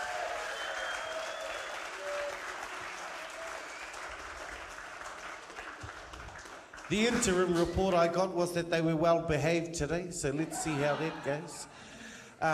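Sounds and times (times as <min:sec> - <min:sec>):
large audience applause for judges: 0:00.0 - 0:07.4
whistles and calls: 0:00.5 - 0:01.8
speech: 0:06.9 - 0:12.5
laughter: 0:10.3 - 0:11.7.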